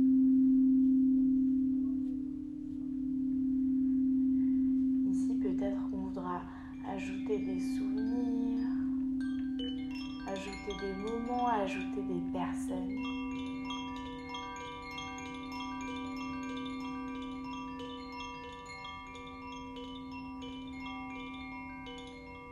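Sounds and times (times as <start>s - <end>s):
deep steady crystal bowl tone: 0.0s - 22.5s
chimes ringing: 4.5s - 22.5s
person speaking: 5.1s - 8.9s, 10.3s - 13.0s.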